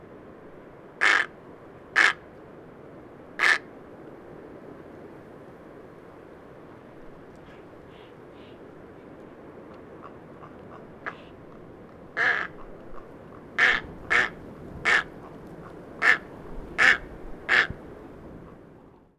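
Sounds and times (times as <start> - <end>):
dimorphic egret calling: 7.0 - 17.8.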